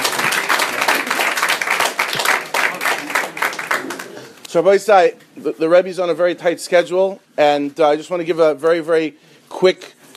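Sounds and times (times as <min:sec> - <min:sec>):
crowd clapping: 0:00.0 - 0:04.4
speech: 0:04.5 - 0:09.9.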